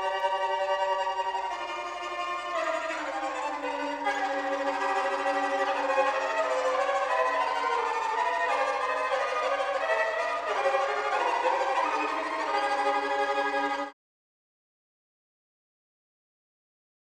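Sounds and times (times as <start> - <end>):
10-string double violin: 0.0 - 14.0.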